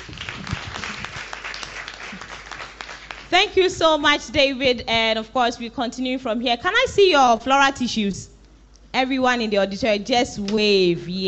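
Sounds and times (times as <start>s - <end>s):
audience applause: 0.0s - 3.3s
speech: 3.3s - 8.3s, 9.0s - 11.2s.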